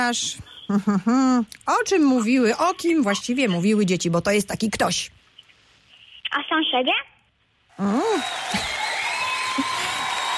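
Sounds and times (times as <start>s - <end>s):
speech: 0.0s - 5.2s, 6.3s - 7.1s, 7.8s - 8.8s
audience applause: 7.8s - 10.3s
short cheer: 7.8s - 10.3s.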